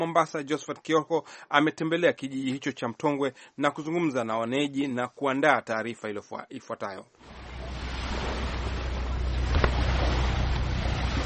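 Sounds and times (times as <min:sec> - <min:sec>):
speech: 0:00.0 - 0:07.8
wind and water rushing over the Indian Ocean channel between Mombasa Island and Mtongwe: 0:07.2 - 0:11.2.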